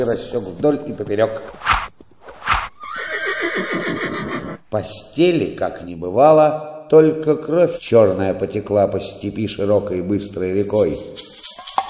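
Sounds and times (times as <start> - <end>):
speech: 0.0 - 1.7, 4.7 - 11.3
horse snorting: 1.4 - 4.6
horse neighing: 2.6 - 4.6.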